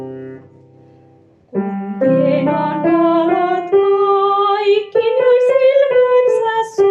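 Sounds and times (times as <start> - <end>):
soprano singing: 1.6 - 6.8.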